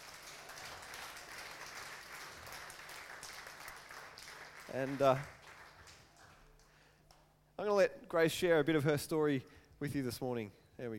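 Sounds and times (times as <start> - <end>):
audience clapping: 0.0 - 7.3
speech: 4.7 - 5.4, 7.6 - 10.9.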